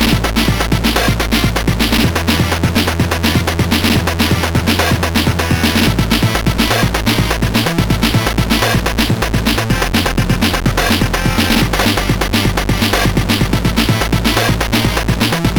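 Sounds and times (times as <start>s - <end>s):
chiptune music from a MOS6581R4 SID chip: 0.0s - 15.5s.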